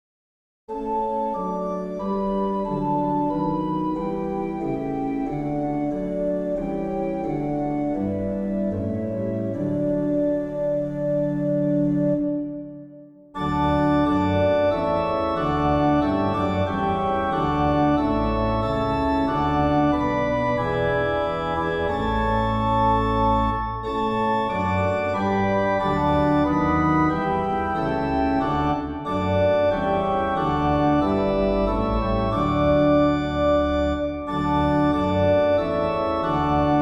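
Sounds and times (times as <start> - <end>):
organ playing two verses: 0.7 - 36.7.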